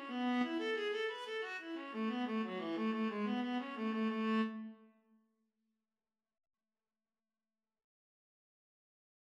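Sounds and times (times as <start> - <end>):
Irish jig medley played as a viola and cello duet: 0.0 - 4.8.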